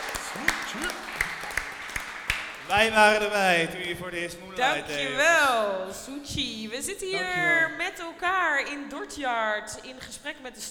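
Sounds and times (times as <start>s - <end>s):
sparse scattered clapping from an audience: 0.0s - 3.9s
speech: 0.4s - 1.1s, 2.7s - 10.6s.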